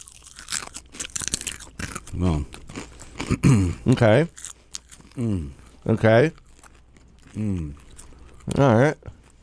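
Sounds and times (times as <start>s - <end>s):
person crunching on a roasted rhino beetle: 0.0s - 2.2s
speech: 2.1s - 2.6s, 3.3s - 4.4s, 5.2s - 6.4s, 7.4s - 7.8s, 8.5s - 9.2s.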